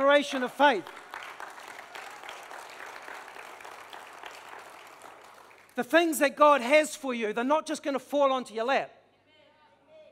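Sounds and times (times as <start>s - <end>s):
hands clapping: 0.0s - 6.0s
speech: 0.1s - 1.0s, 5.8s - 9.0s.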